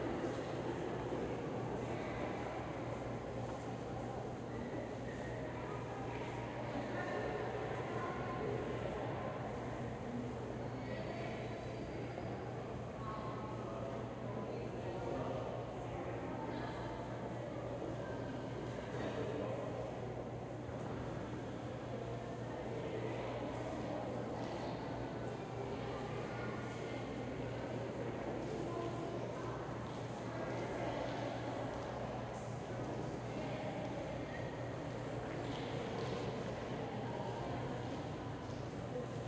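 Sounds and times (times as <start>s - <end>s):
crowd in an interior museum hall: 0.0s - 39.2s.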